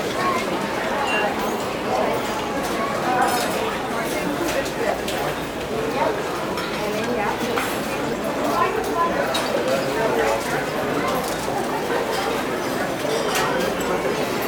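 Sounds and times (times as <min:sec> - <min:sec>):
busy deli restaurant ambience: 0:00.0 - 0:14.4.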